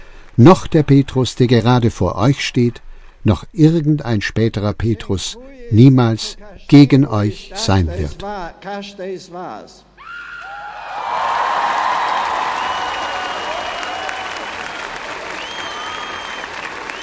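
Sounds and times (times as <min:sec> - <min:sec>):
speech: 0:00.4 - 0:10.2
long applause from young crowd: 0:10.4 - 0:17.0.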